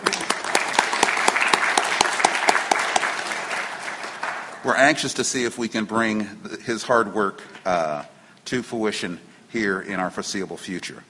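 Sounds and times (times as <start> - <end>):
audience applause: 0.0 - 5.0
speech: 4.6 - 11.0.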